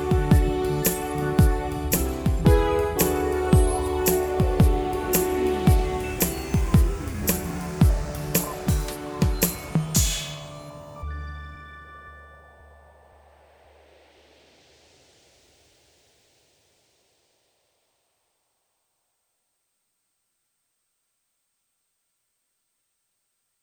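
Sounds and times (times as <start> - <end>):
instrumental music: 0.0 - 12.2.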